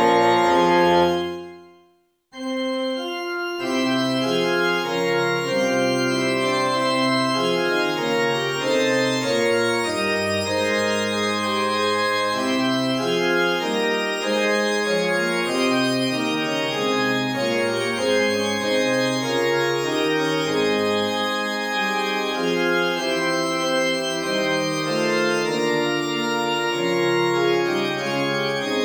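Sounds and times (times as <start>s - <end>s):
organ: 0.0s - 1.7s, 2.4s - 28.8s
English horn: 0.0s - 1.8s
bassoon: 0.0s - 1.8s
flute: 0.0s - 1.8s
oboe: 0.0s - 1.8s.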